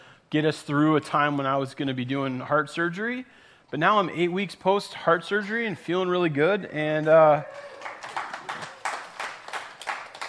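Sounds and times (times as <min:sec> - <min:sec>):
speech: 0:00.3 - 0:07.7
church congregation clapping during a sermon: 0:07.0 - 0:10.2.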